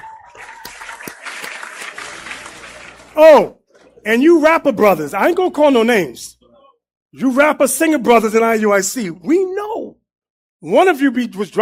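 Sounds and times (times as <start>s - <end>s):
men clapping: 0.0s - 3.2s
speech: 3.2s - 6.4s, 7.1s - 9.4s, 10.6s - 11.6s.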